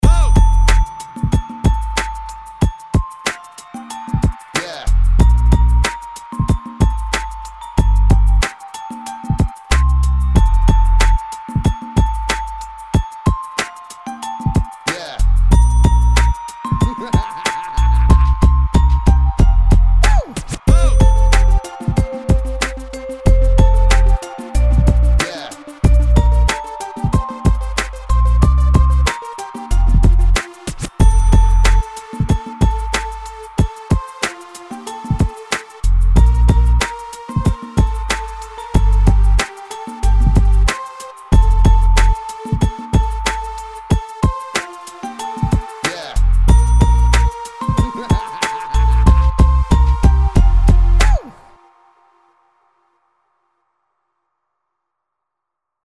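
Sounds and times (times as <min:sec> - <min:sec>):
R&B Christmas song: 0:00.0 - 0:52.6.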